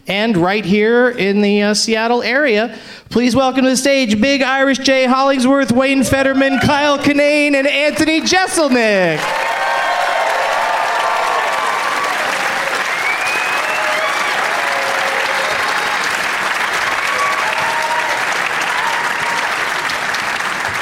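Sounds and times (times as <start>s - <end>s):
speech: 0.0s - 9.5s
audience applause and cheering: 8.0s - 20.8s.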